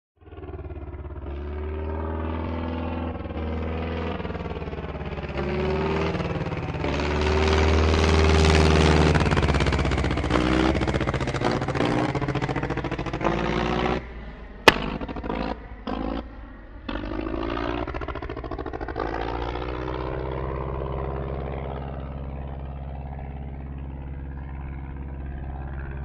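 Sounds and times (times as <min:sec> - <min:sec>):
prop plane engine backfire during idle: 0:00.3 - 0:22.6.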